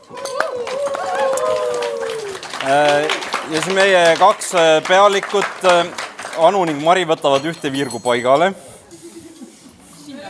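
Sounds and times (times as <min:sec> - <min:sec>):
applause: 0:00.0 - 0:07.5
speech: 0:02.6 - 0:08.6.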